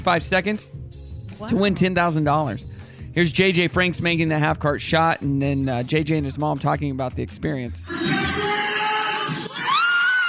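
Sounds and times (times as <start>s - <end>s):
speech: 0.0s - 8.3s
basketball crowd cheering: 7.9s - 10.2s
high-pitched screams: 7.9s - 10.2s.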